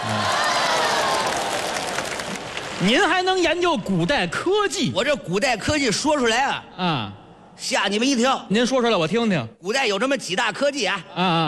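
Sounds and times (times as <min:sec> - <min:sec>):
audience applause at a comedy crosstalk performance: 0:00.0 - 0:03.1
speech: 0:02.8 - 0:11.4.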